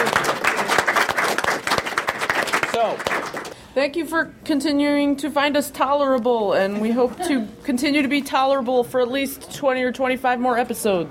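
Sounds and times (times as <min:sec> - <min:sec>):
audience applause: 0:00.0 - 0:03.6
speech: 0:02.8 - 0:03.1, 0:03.8 - 0:11.0.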